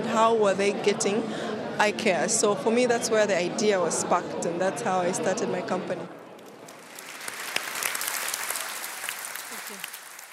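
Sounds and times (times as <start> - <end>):
speech: 0.2 - 6.2
audience applause: 6.4 - 10.3.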